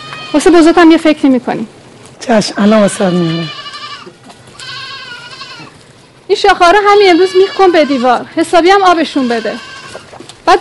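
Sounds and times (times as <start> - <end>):
goats bleating: 0.0 - 1.0, 2.4 - 5.9, 6.8 - 10.2
speech: 0.3 - 3.6, 6.3 - 9.7, 10.5 - 10.6.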